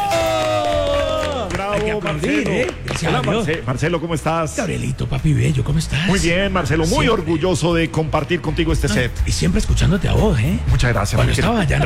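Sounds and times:
voice imitating crowd cheering: 0:00.0 - 0:02.5
speech: 0:01.8 - 0:11.8.

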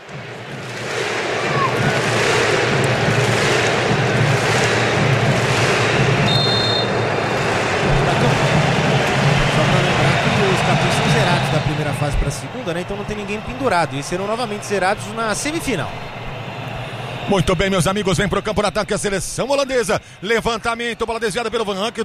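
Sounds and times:
Morocco football supporters chanting in stadium: 0:00.0 - 0:17.4
speech: 0:12.1 - 0:16.2, 0:17.3 - 0:22.0.

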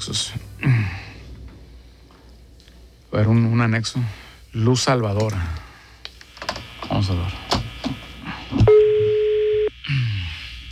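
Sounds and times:
speech: 0:00.1 - 0:00.4, 0:03.1 - 0:05.6, 0:06.9 - 0:07.5
phone line ringing: 0:08.6 - 0:09.7.

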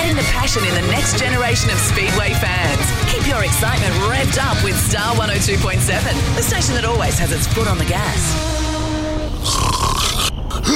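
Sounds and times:
speech: 0:00.5 - 0:08.6
loud snoring: 0:09.4 - 0:10.7.

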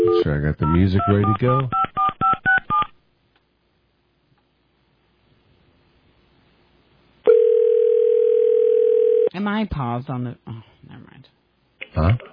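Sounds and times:
speech: 0:00.2 - 0:01.8, 0:09.4 - 0:12.3
steady telephone tone: 0:07.3 - 0:09.3.

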